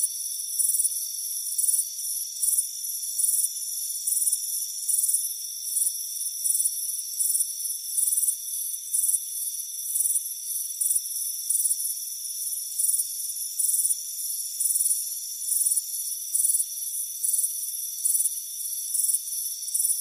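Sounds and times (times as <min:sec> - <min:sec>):
cricket chirping: 0:00.0 - 0:19.9
thin insect drone: 0:00.0 - 0:19.9.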